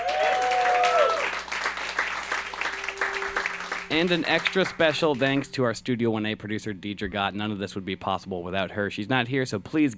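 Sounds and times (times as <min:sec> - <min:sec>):
audience applause: 0:00.0 - 0:05.5
speech: 0:03.9 - 0:09.9.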